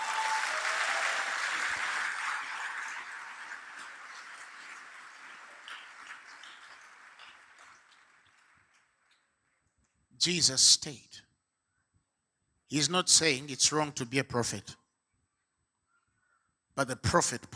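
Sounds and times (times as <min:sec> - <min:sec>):
audience clapping: 0:00.0 - 0:09.3
speech: 0:10.2 - 0:11.2, 0:12.7 - 0:14.8, 0:16.8 - 0:17.5.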